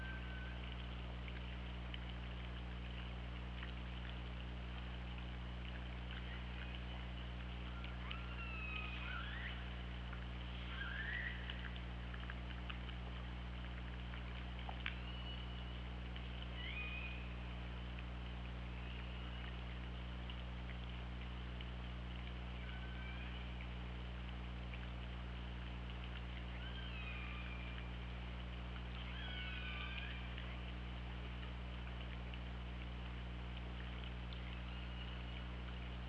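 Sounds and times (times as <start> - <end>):
continuous low hum: 0.0 - 36.0
orca calls: 7.8 - 9.7, 10.6 - 11.6, 16.6 - 17.3, 26.6 - 27.9, 29.0 - 30.4.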